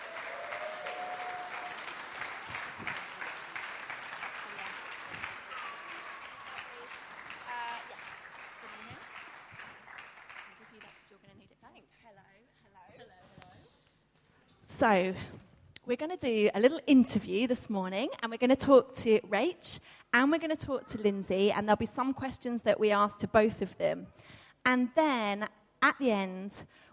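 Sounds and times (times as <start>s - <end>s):
church audience applause: 0.0s - 11.2s
speech: 14.8s - 26.9s.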